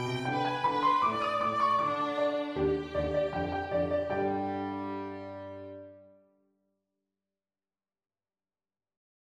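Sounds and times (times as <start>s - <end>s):
violin: 0.0s - 6.1s
piano: 0.0s - 6.3s.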